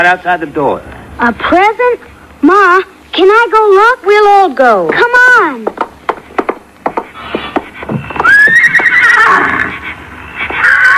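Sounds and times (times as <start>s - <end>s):
speech: 0.0s - 5.7s
hooves clopping: 4.9s - 10.9s
pony whinnying: 7.1s - 10.9s.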